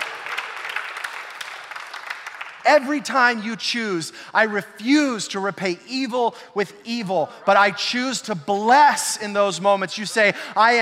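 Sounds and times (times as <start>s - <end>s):
audience clapping: 0.0s - 3.4s
speech: 2.6s - 10.8s.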